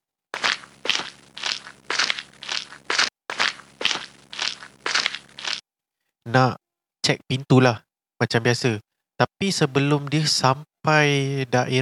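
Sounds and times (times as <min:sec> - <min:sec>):
crunching footsteps: 0:00.4 - 0:05.6
speech: 0:06.3 - 0:11.7.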